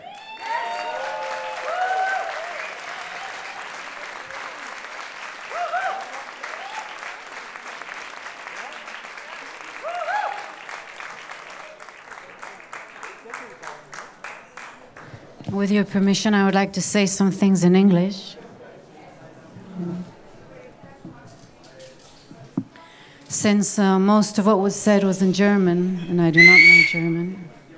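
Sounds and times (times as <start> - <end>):
concert audience applause: 0.0 - 15.5
speech: 15.6 - 18.4, 23.4 - 27.6.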